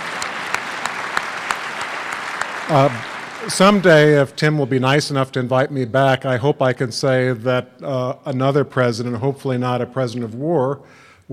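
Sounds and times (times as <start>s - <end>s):
audience applause: 0.0s - 4.6s
speech: 2.7s - 11.3s.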